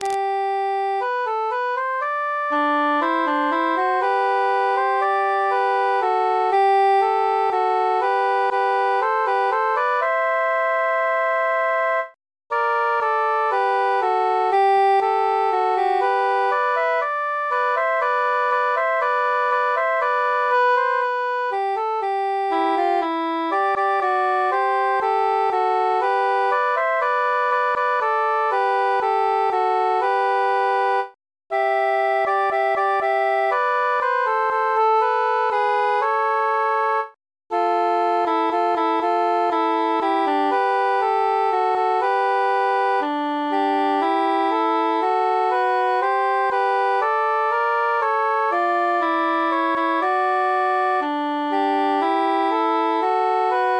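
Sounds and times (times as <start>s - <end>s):
muted tenor instrument: 0.0s - 53.7s.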